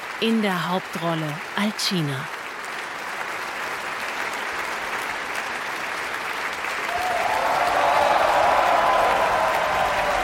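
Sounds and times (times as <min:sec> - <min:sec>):
opera audience applause at curtain call: 0:00.0 - 0:10.2
speech: 0:00.2 - 0:02.4.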